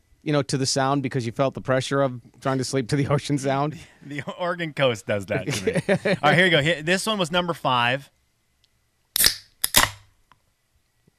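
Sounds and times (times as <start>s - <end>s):
speech: 0.2s - 8.2s
laughter: 2.9s - 6.9s
cold drink can being cracked open: 9.2s - 10.1s.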